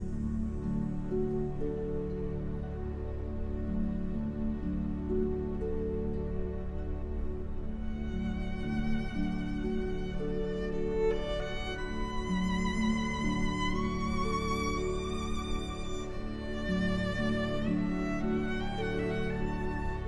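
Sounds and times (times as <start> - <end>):
solo violin: 0.0 - 20.0.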